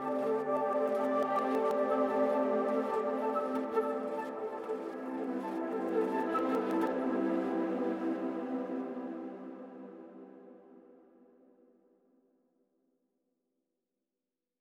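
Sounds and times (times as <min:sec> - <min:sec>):
flute: 0:00.0 - 0:10.2.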